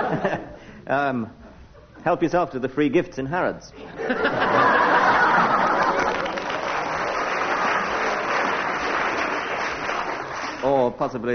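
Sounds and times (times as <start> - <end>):
laughter: 0.0 - 0.6, 3.8 - 6.8
speech: 0.2 - 1.4, 2.0 - 4.8, 10.6 - 11.3
applause: 5.0 - 10.8.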